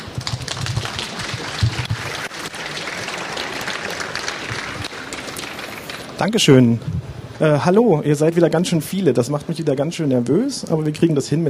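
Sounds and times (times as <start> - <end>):
audience applause: 0.0 - 6.3
speech: 6.2 - 11.4.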